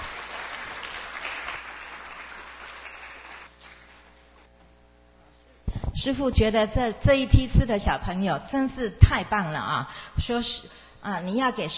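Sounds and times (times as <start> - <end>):
children clapping for their teacher in a classroom: 0.0 - 4.0
speech: 6.0 - 11.7.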